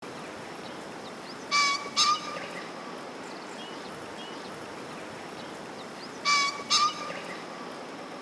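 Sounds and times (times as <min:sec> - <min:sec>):
background hiss: 0:00.0 - 0:08.2
green pheasant giving harsh two-note calls: 0:00.7 - 0:04.6, 0:05.4 - 0:07.6.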